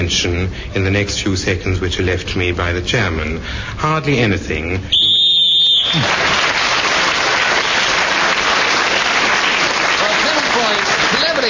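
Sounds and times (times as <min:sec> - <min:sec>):
speech: 0:00.0 - 0:05.2
whistle blown to end the round: 0:04.9 - 0:06.1
crowd applause and cheering: 0:05.3 - 0:11.4.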